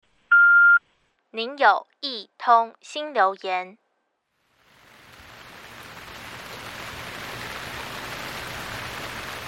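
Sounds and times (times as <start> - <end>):
speech: 1.3 - 3.8
heavy rain: 4.4 - 9.4.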